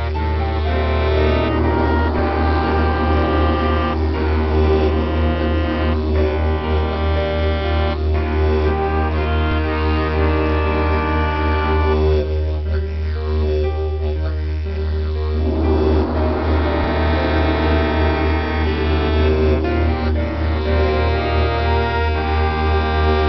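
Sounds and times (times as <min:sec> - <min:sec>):
gong: 0:00.0 - 0:07.4, 0:14.4 - 0:21.6
didgeridoo drone: 0:00.0 - 0:23.2.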